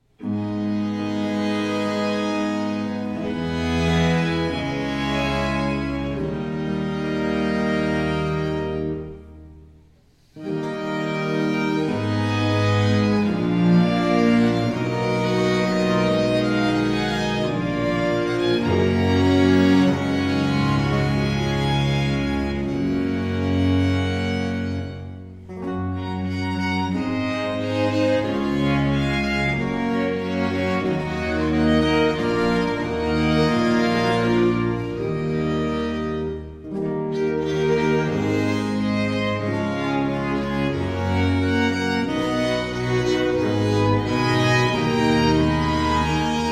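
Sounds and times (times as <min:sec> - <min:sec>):
sonata in A minor: 0:00.0 - 0:46.5.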